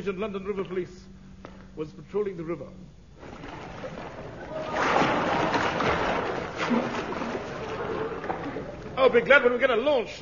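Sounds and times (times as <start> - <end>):
speech: 0.0 - 1.2, 1.8 - 3.3, 6.6 - 7.0, 9.0 - 10.2
water splashing from people swimming in river: 3.2 - 9.0.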